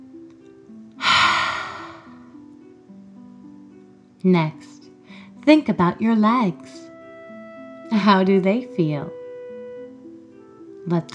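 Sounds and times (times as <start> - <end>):
soft steady tones: 0.0 - 11.1
deep exhale during a guided relaxation: 1.0 - 2.2
speech: 4.2 - 4.9, 5.5 - 6.8, 8.0 - 9.2, 10.8 - 11.1.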